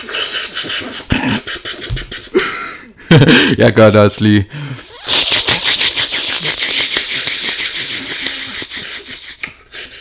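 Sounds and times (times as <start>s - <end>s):
sucking hiss through the lip: 0.0s - 2.4s, 4.8s - 10.0s
speech: 3.1s - 4.6s
laughter: 5.3s - 9.4s.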